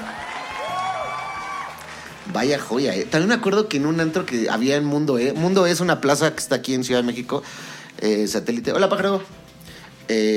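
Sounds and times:
voices shouting and whooping: 0.0s - 1.8s
crowd clapping: 0.0s - 5.3s
speech: 2.3s - 9.4s, 10.1s - 10.3s.

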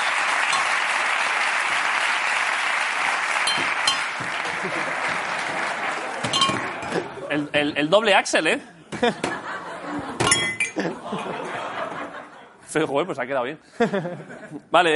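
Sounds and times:
applause for Revolution on Ice: 0.0s - 7.0s
laughter: 4.3s - 7.5s, 8.7s - 12.7s, 13.7s - 14.7s
speech: 7.4s - 9.3s, 12.7s - 14.9s.

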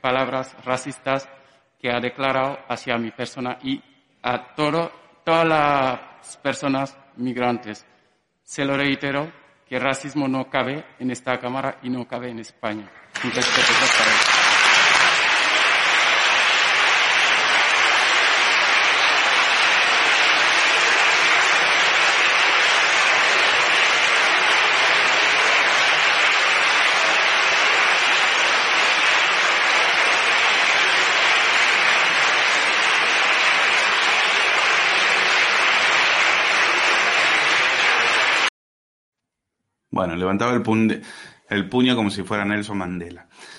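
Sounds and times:
speech: 0.0s - 7.9s, 8.5s - 14.4s, 40.0s - 43.5s
applause in parliamentary chamber: 13.0s - 38.5s.

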